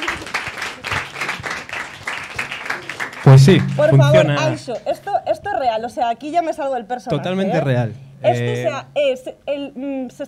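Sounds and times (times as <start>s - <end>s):
audience applause: 0.0s - 4.5s
speech: 3.2s - 10.2s.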